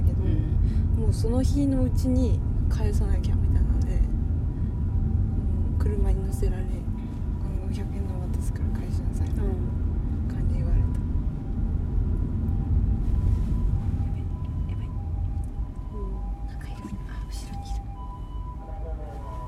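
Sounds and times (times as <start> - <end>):
car engine and road rumble: 0.0 - 19.4
speech: 1.1 - 3.4, 5.9 - 6.9
ambulance siren passing outside a car: 4.0 - 9.9, 11.0 - 19.4.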